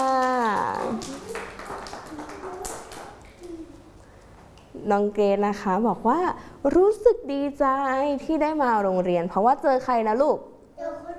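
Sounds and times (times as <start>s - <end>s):
people clapping: 0.0s - 3.7s
speech: 4.9s - 10.5s.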